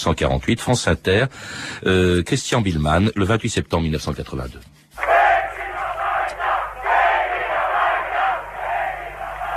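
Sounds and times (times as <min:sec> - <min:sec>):
speech: 0:00.0 - 0:04.8
huge crowd of protesters roaring and chanting: 0:05.0 - 0:09.5.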